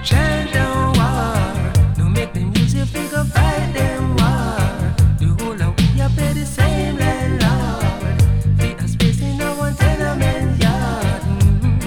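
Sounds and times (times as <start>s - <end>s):
person chanting: 0.1s - 8.3s, 9.1s - 11.7s.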